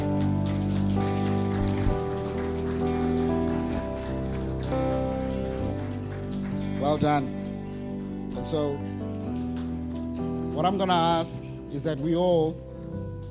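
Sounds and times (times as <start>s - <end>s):
audience clapping for kids: 0.0s - 11.0s
speech: 6.9s - 7.4s, 8.4s - 9.0s, 10.6s - 12.7s.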